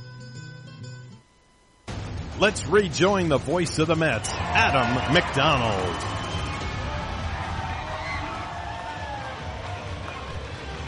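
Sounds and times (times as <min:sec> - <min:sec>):
speech: 0:02.4 - 0:06.2
excited ballpark crowd: 0:03.5 - 0:10.8.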